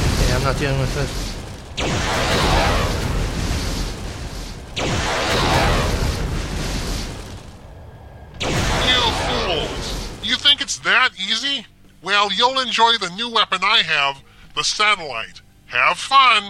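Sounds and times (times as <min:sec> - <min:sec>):
nuclear explosions in a video game: 0:00.0 - 0:10.7
speech: 0:00.4 - 0:02.3, 0:10.8 - 0:16.4.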